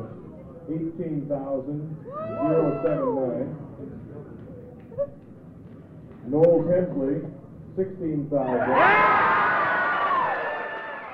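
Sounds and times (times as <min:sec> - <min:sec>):
speech: 0:00.7 - 0:04.3, 0:05.0 - 0:05.2, 0:06.3 - 0:09.5
election-night supporters cheering at the Westmark in Fairbanks: 0:08.5 - 0:11.1.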